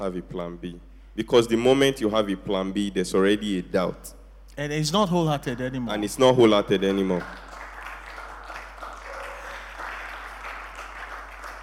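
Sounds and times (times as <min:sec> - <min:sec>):
speech: 0:00.0 - 0:07.4
half-hearted clapping: 0:06.8 - 0:11.6.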